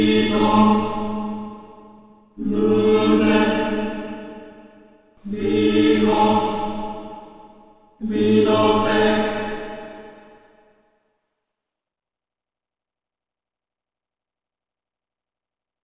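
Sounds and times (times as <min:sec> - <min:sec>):
soundtrack choir chanting: 0:00.0 - 0:01.4, 0:02.4 - 0:04.6, 0:05.2 - 0:10.4.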